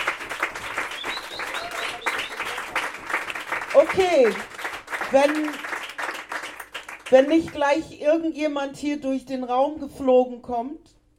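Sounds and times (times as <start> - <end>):
audience applause at a live stage event: 0.0 - 7.2
speech: 3.8 - 4.5, 5.1 - 5.7, 7.1 - 10.9.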